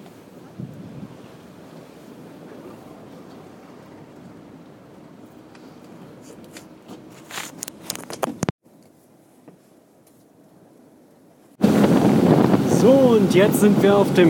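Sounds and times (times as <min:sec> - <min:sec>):
fast motorboat engine roaring: 0:00.0 - 0:08.1, 0:11.6 - 0:14.2
crackling buffeting wind noise: 0:00.0 - 0:08.6, 0:11.6 - 0:14.2
speech: 0:13.2 - 0:14.2.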